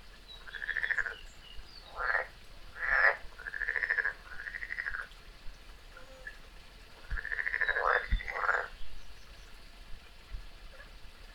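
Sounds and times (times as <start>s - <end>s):
frog croaks: 0.4s - 1.2s, 1.8s - 5.1s, 7.0s - 8.7s.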